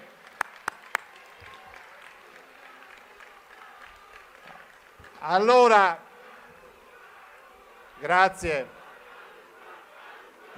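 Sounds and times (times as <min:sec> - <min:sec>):
sharp handclaps: 0:00.0 - 0:05.3
speech: 0:05.2 - 0:06.0, 0:08.0 - 0:08.8.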